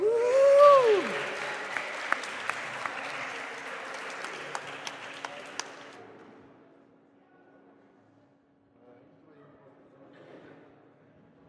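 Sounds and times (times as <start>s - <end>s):
audience applause: 0.0s - 6.0s.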